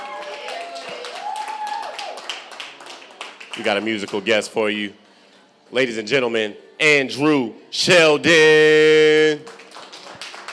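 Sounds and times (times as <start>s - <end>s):
audience clapping: 0.0s - 4.5s, 9.0s - 10.5s
speech: 3.6s - 5.0s, 5.7s - 9.5s.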